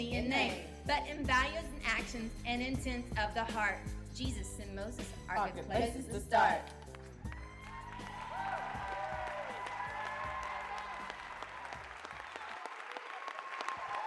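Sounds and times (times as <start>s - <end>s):
speech: 0.0s - 6.8s
audience clapping: 6.6s - 14.0s.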